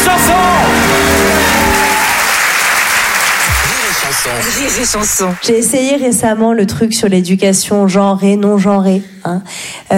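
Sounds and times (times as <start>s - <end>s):
crowd applause: 0.0s - 6.0s
speech: 4.3s - 9.9s.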